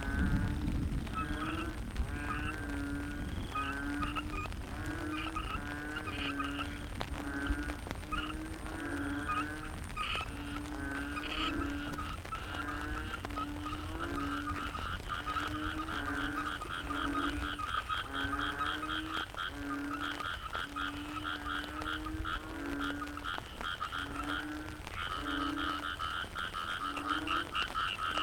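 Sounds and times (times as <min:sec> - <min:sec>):
frog chorus croaking: 0:00.0 - 0:28.2.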